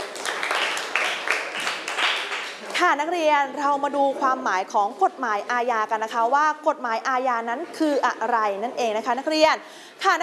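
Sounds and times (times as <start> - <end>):
students in a criminal law class clapping for a classmate: 0.0 - 2.8
speech: 2.8 - 10.2.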